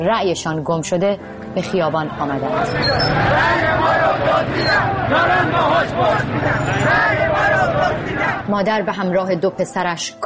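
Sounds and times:
speech: 0:00.0 - 0:10.2
street crowd hubbub and shouting: 0:01.8 - 0:09.1.

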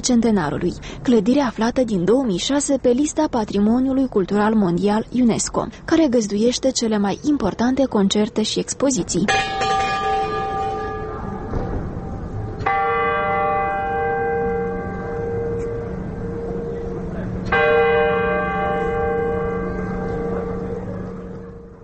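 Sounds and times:
speech: 0:00.0 - 0:09.8
town hall astronomical clock bells striking: 0:09.2 - 0:21.8.

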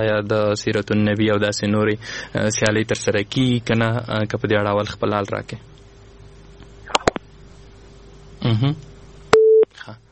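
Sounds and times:
speech: 0:00.0 - 0:05.8, 0:08.5 - 0:08.9
busy tone beep after a phone line is cut: 0:09.4 - 0:09.7.

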